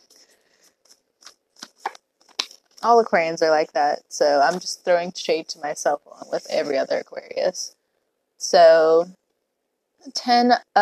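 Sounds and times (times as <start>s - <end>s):
tarot cards being shuffled: 0.0s - 2.9s
speech: 2.8s - 7.8s, 8.4s - 9.2s, 10.0s - 10.8s.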